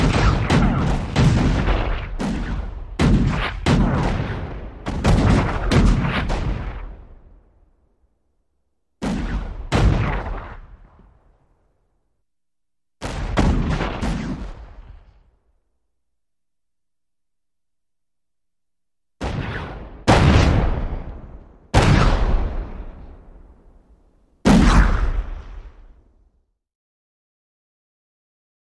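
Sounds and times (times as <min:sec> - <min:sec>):
cannon shots in a fight: 0:00.0 - 0:07.5, 0:09.0 - 0:11.4, 0:13.0 - 0:15.4, 0:19.2 - 0:26.0.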